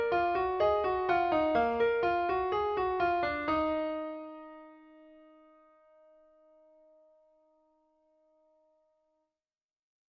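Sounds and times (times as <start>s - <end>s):
easy piano tutorial playing: 0.0s - 7.1s.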